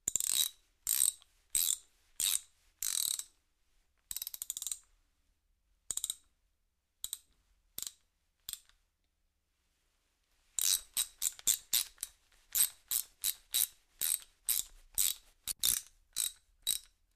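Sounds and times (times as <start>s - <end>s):
hand tool ratchet clicking at various speeds: 0.1s - 3.3s, 4.1s - 4.8s, 5.9s - 6.2s, 10.6s - 17.1s.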